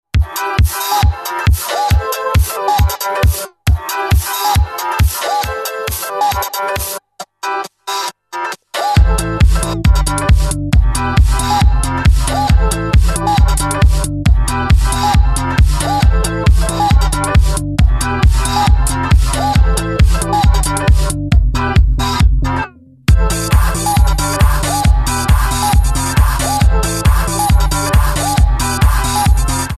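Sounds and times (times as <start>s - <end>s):
instrumental music: 0.2s - 29.7s.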